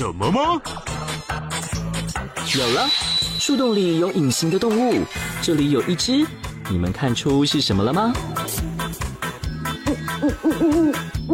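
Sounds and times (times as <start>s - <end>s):
speech: 0.0s - 1.5s, 2.5s - 8.7s, 10.2s - 11.2s
owl hooting: 9.7s - 11.3s.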